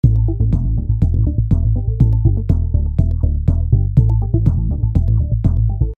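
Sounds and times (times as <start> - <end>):
music: 0.0 - 5.9.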